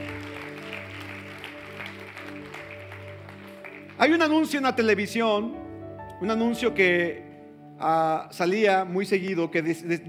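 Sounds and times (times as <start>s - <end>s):
loud applause: 0.0s - 4.4s
speech: 4.0s - 5.6s, 6.2s - 10.0s.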